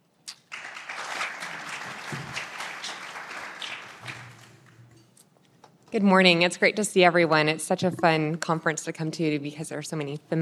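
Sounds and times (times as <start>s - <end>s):
conference audience applauding to welcome two speakers: 0.4s - 5.0s
speech: 5.9s - 10.3s.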